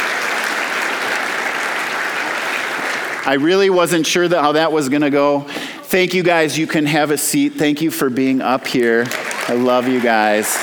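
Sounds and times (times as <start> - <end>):
audience applause for children: 0.0 - 3.8, 8.9 - 10.6
speech: 3.2 - 10.6.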